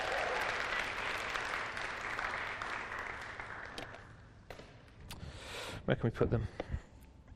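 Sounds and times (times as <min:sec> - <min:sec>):
crowd applauding: 0:00.0 - 0:04.3
speech: 0:05.9 - 0:06.7.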